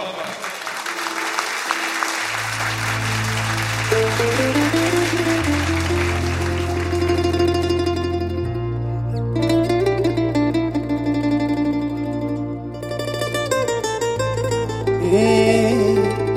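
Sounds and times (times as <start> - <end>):
audience applause at a Punjabi stage event: 0.0 - 8.3
melodic instrumental notes: 0.9 - 16.3.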